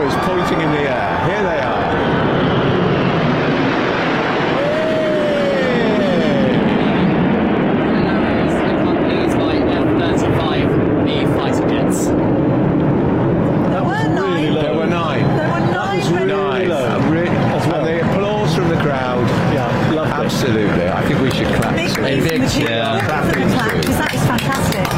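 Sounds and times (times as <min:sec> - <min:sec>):
RAF Red Arrows jet aircraft formation flypast: 0:00.0 - 0:24.9.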